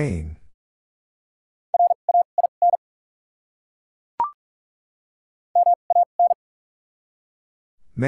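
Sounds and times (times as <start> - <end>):
morse code tones: 1.8 - 2.8, 5.6 - 6.4.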